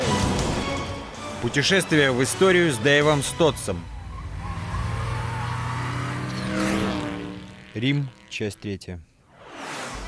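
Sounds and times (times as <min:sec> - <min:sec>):
road rumble: 0:00.0 - 0:10.0
speech: 0:01.4 - 0:03.9, 0:07.8 - 0:09.1
small Smart car engine humming: 0:01.8 - 0:08.6.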